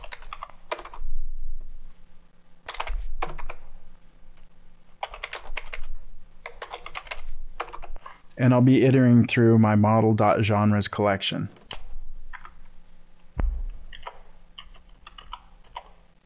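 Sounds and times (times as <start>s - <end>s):
fingers typing code on a computer keyboard in Visual Studio: 0.0s - 1.0s, 2.7s - 3.6s, 5.0s - 8.1s, 13.9s - 16.0s
speech: 8.4s - 11.6s.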